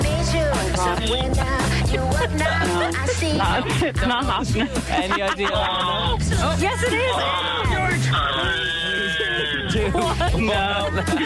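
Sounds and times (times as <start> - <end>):
laughter: 0.5 - 11.2
speech: 2.9 - 11.2
voice imitating a game-show buzzer: 7.1 - 9.8.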